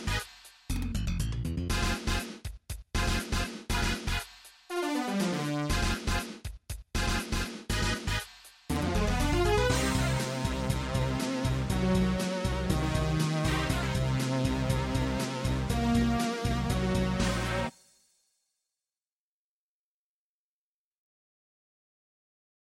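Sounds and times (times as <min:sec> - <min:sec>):
MIDI battle music: 0:00.0 - 0:17.7.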